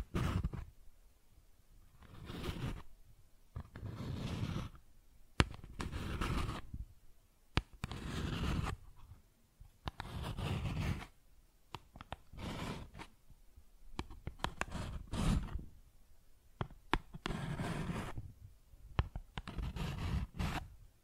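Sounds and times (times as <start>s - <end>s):
cardboard being scratched and rubbed: 0.0s - 0.7s, 2.0s - 2.9s, 3.6s - 4.8s, 5.4s - 6.7s, 7.6s - 9.1s, 9.9s - 11.1s, 12.0s - 13.1s, 14.0s - 15.6s, 16.9s - 18.2s, 19.3s - 20.7s.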